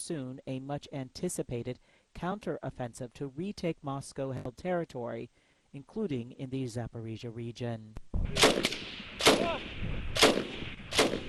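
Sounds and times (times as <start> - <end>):
speech: 0.0 - 10.6
gunfire during military combat drills: 8.2 - 11.2.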